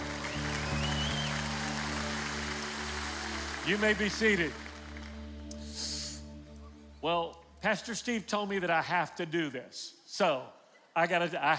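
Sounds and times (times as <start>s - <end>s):
audience clapping: 0.0s - 5.6s
speech: 3.6s - 4.6s, 7.0s - 11.5s.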